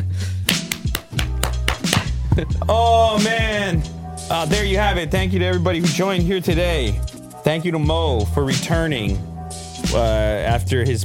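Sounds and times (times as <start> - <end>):
sharp hand claps: 0.5 - 2.2
speech: 2.4 - 11.0.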